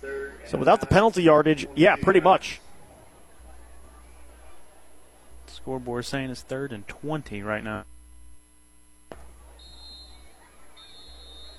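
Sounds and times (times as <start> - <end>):
speech: 0.5 - 2.6, 5.6 - 7.9
referee whistles at football game: 9.6 - 11.5.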